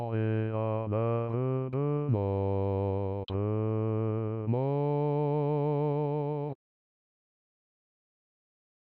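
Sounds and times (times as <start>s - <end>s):
bass: 0.0s - 6.3s.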